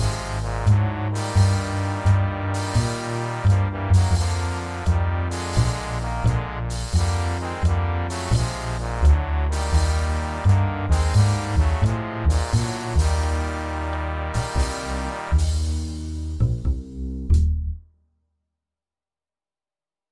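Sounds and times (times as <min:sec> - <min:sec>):
drums: 0:00.0 - 0:13.6, 0:14.4 - 0:16.7
three trombones playing jazz in E flat: 0:00.0 - 0:16.4
bass: 0:00.0 - 0:18.0.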